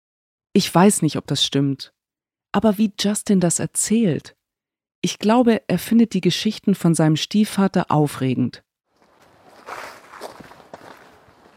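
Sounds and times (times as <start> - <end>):
speech: 0.5 - 4.4, 5.0 - 8.6
footsteps of people walking: 9.0 - 11.5.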